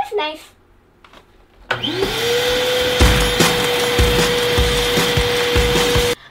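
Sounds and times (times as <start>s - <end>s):
speech: 0.1s - 0.6s
vacuum cleaner blowing: 1.7s - 6.2s.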